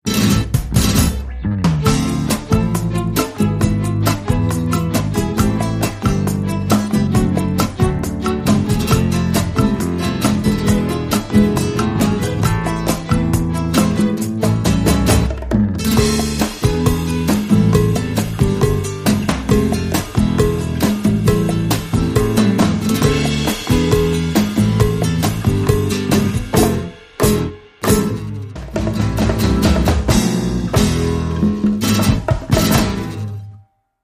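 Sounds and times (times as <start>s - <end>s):
guitar: 0.0s - 33.8s.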